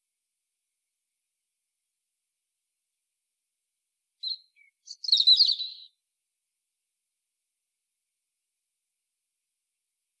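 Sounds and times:
European robin singing: 4.2 - 6.0.

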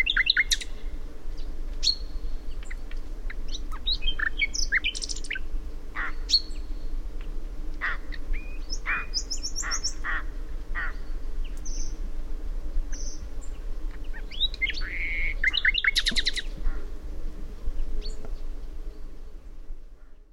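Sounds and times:
common nightingale singing: 0.0 - 7.0, 7.8 - 12.0, 12.8 - 16.9, 17.8 - 20.3
low background hum: 0.0 - 20.3.

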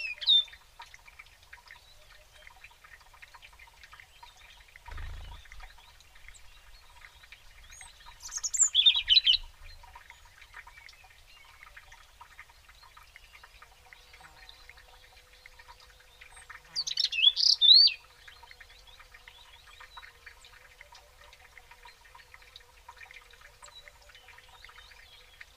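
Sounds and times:
European robin singing: 0.0 - 0.6, 5.0 - 11.5, 16.3 - 20.1.

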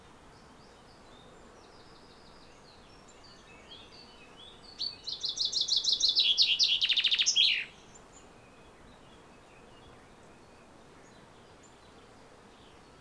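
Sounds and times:
common chaffinch singing: 4.9 - 7.7.

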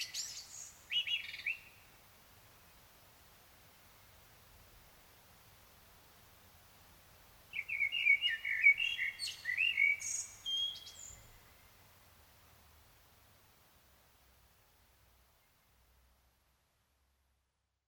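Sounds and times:
common blackbird singing: 0.0 - 1.7, 7.5 - 11.6.

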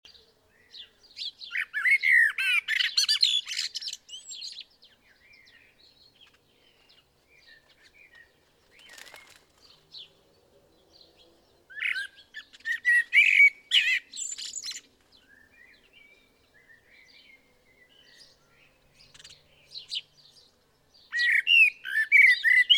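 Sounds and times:
common blackbird singing: 0.1 - 22.7.

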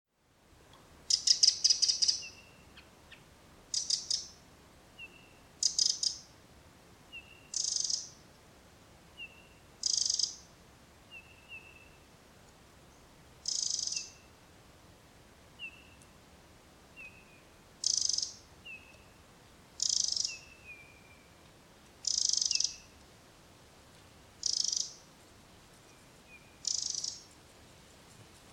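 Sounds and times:
hiss: 0.1 - 28.5
Eurasian wren rattling calls: 1.1 - 2.4, 3.7 - 4.4, 5.6 - 6.2, 7.5 - 8.2, 9.8 - 10.4, 13.4 - 14.2, 17.8 - 18.4, 19.8 - 20.5, 22.0 - 22.9, 24.4 - 25.0, 26.6 - 27.3.

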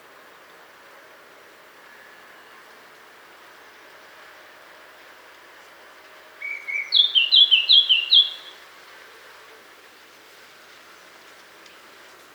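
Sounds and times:
Eurasian blackcap Sylvia atricapilla song with fluty whistled slurs: 6.4 - 8.6.

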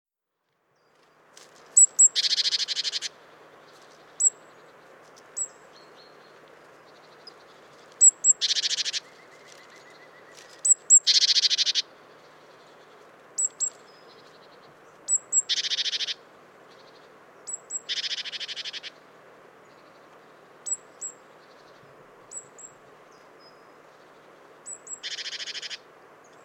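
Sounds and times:
great tit calls: 1.8 - 3.2, 3.9 - 4.7, 5.3 - 19.0, 20.6 - 23.6, 24.2 - 26.4.

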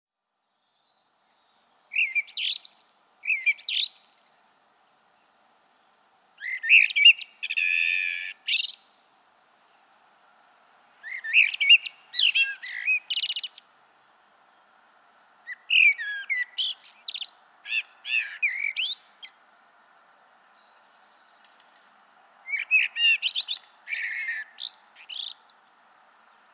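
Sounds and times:
hiss: 0.2 - 26.5
common blackbird singing: 0.6 - 4.4, 6.4 - 9.1, 11.0 - 13.6, 15.5 - 21.5, 22.5 - 25.6.

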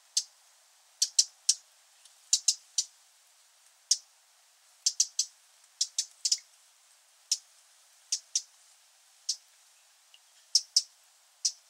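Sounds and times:
Eurasian wren ticking calls: 1.0 - 1.6, 2.3 - 2.9, 3.9 - 4.1, 4.8 - 6.5, 7.3 - 7.5, 8.1 - 8.5, 9.2 - 9.5, 10.2 - 11.6.

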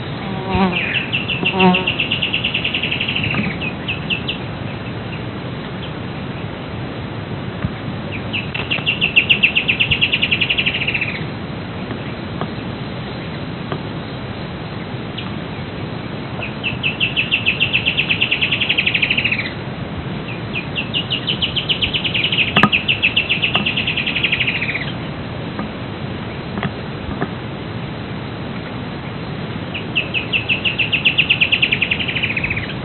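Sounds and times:
bird trilling: 0.0 - 5.2, 8.1 - 11.3, 16.4 - 19.6, 20.3 - 25.1, 29.7 - 32.8
steady background hiss: 0.0 - 32.8
speech: 1.6 - 1.9.

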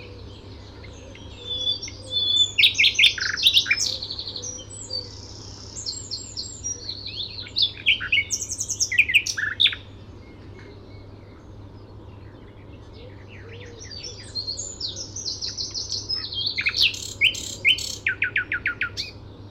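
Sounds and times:
common nightingale singing chirps and whistles: 0.0 - 19.4.

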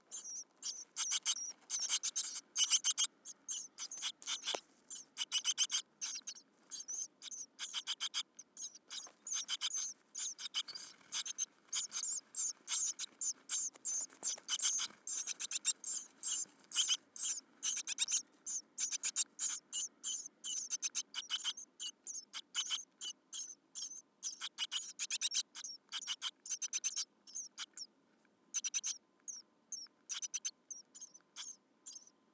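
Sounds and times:
great tit chattering: 0.1 - 27.9, 28.5 - 32.1.

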